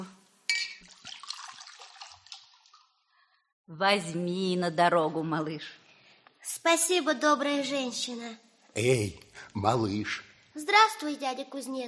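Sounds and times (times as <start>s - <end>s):
milk pouring into a jug: 0.8s - 2.9s
speech: 3.7s - 5.8s, 6.5s - 11.8s.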